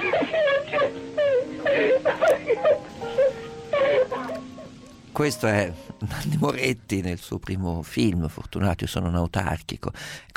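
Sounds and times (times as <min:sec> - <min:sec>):
child crying and wailing: 0:00.0 - 0:04.7
speech: 0:05.2 - 0:10.3.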